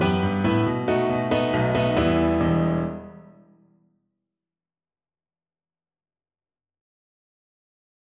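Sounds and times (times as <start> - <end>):
musical accompaniment in E minor: 0.0 - 3.4.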